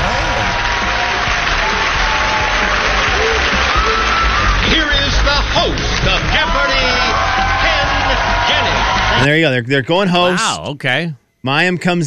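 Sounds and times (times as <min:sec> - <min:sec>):
studio audience clapping and cheering: 0:00.0 - 0:09.4
speech: 0:09.2 - 0:12.0.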